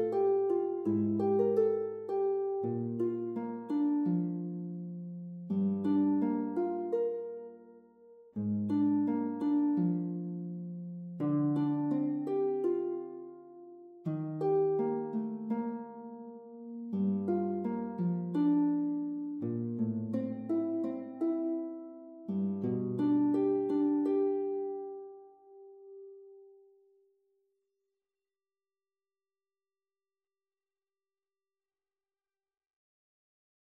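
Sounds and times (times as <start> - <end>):
lute playing: 0.0 - 26.4.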